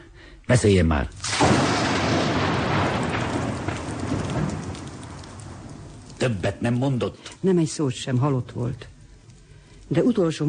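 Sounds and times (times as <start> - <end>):
speech: 0.5 - 1.6, 6.2 - 8.9, 9.9 - 10.4
heavy rain: 1.2 - 7.0
thunder rumbling: 1.2 - 7.1.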